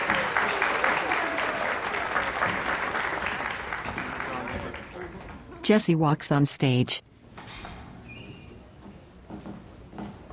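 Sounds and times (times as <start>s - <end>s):
crowd applause in a hall: 0.0s - 5.6s
speech: 5.6s - 7.1s.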